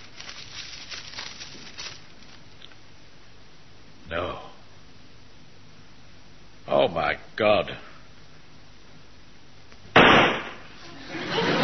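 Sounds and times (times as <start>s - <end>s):
steady hiss: 0.0s - 11.6s
speech: 4.1s - 4.5s, 6.7s - 7.9s
gunshot as a man shoots himself: 9.9s - 10.7s
laughter: 10.8s - 11.6s.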